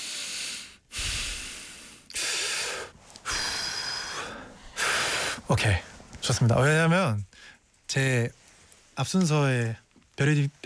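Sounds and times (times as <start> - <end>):
deep breaths: 0.0 - 6.1, 7.3 - 7.8
speech: 5.5 - 7.3, 7.9 - 8.4, 9.0 - 10.6.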